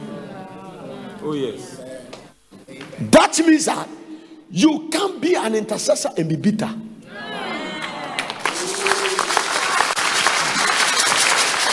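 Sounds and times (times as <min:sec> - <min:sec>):
speech: 0:01.2 - 0:01.9, 0:03.0 - 0:06.8
audience clapping: 0:07.8 - 0:11.7.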